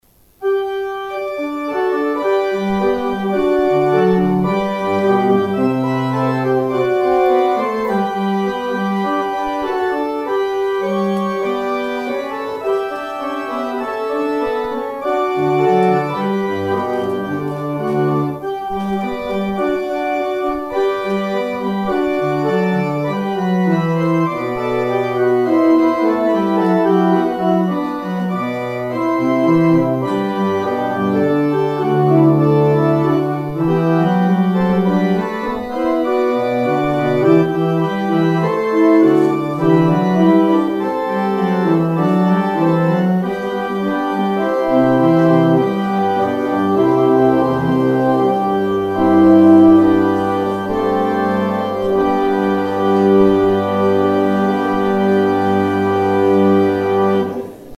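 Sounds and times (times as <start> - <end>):
organ outro: 0.2 - 57.7.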